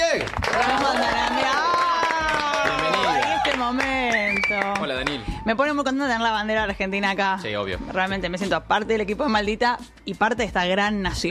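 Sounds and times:
audience clapping: 0:00.0 - 0:05.4
crowd cheering and whooping: 0:00.4 - 0:05.5
speech: 0:04.5 - 0:11.2.

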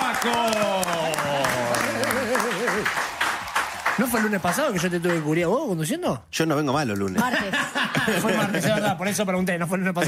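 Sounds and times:
applause: 0:00.0 - 0:05.7
speech: 0:00.2 - 0:01.2, 0:04.1 - 0:10.0
laughter: 0:01.3 - 0:03.0, 0:07.2 - 0:09.2.

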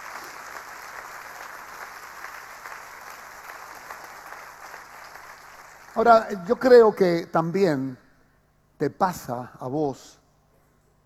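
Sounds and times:
crowd clapping: 0:00.0 - 0:06.8
speech: 0:06.0 - 0:08.0, 0:08.8 - 0:10.2.

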